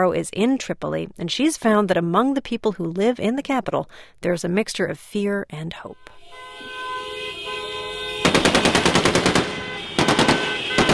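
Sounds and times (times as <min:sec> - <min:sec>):
speech: 0:00.0 - 0:06.5
car horns honking: 0:06.1 - 0:10.9
rebels firing into the air: 0:08.2 - 0:10.9.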